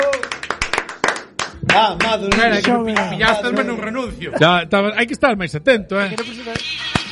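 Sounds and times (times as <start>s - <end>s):
applause: 0.0s - 3.1s
speech: 1.8s - 7.0s.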